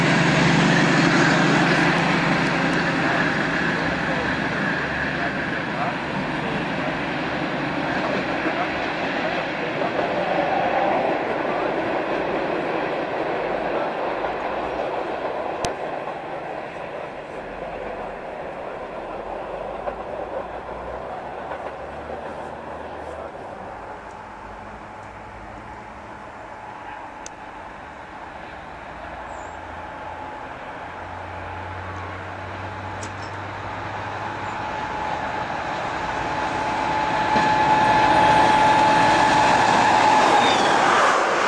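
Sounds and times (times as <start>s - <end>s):
DB Br 215 locomotives: 0.0s - 41.4s.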